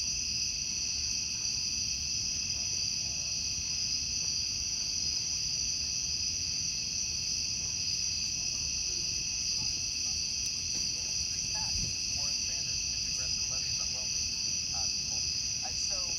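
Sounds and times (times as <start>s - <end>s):
cicadas buzzing in a dense chorus: 0.0s - 16.1s
low background rumble: 6.8s - 16.1s.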